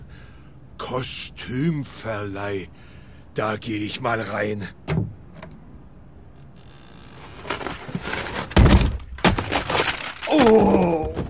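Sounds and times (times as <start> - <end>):
speech: 0.9 - 5.0, 10.4 - 11.0
clattering debris: 7.4 - 11.2
door being smashed in: 8.0 - 11.2.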